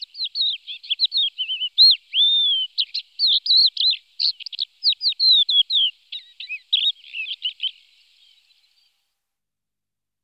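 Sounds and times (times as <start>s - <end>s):
crested lark song: 0.0s - 7.8s.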